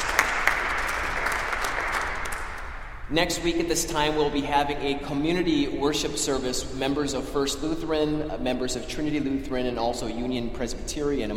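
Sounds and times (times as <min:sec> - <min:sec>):
audience clapping in church: 0:00.0 - 0:03.0
speech: 0:03.1 - 0:11.3.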